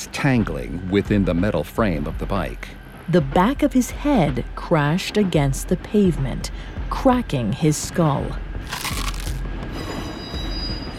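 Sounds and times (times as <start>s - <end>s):
speech: 0.0s - 8.8s
heavy trolley wheels grinding and squealing on the rails: 9.6s - 10.9s.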